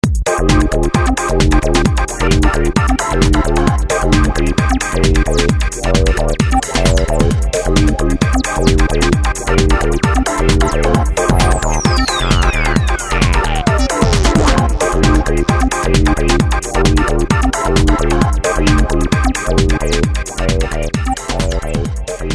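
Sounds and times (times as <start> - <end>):
EMX techno music: 0.1 - 22.3.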